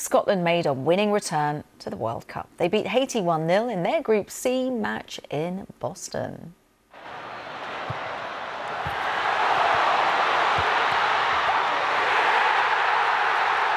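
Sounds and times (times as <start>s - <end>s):
speech: 0.0s - 6.6s
football fans cheering: 7.0s - 13.7s.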